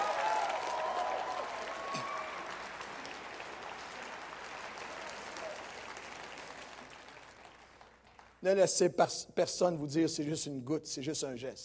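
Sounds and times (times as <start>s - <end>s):
whistles and cheers: 0.0s - 2.8s
audience applause: 0.0s - 8.4s
speech: 8.4s - 11.6s.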